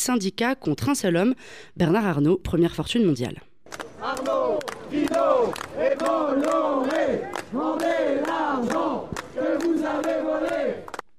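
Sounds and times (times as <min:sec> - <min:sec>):
speech: 0:00.0 - 0:09.1
protest crowd chanting: 0:03.8 - 0:11.0.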